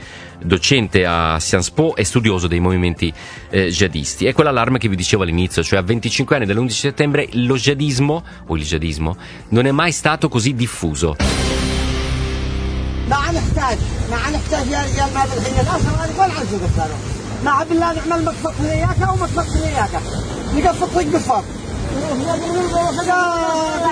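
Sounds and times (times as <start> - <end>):
speech: 0.4 - 11.7, 13.1 - 23.9
waves lapping: 11.2 - 23.9.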